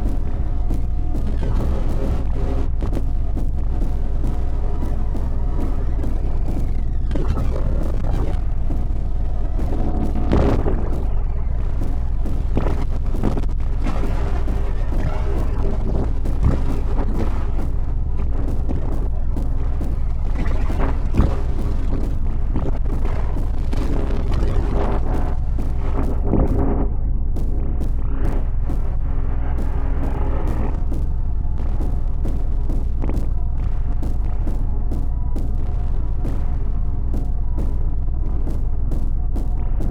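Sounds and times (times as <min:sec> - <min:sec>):
noise session: 0:00.0 - 0:39.8.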